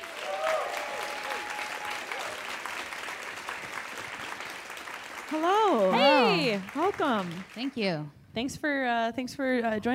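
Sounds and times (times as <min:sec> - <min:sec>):
audience applause for a guest at a live show in Portland: 0:00.0 - 0:07.8
speech: 0:05.3 - 0:09.9.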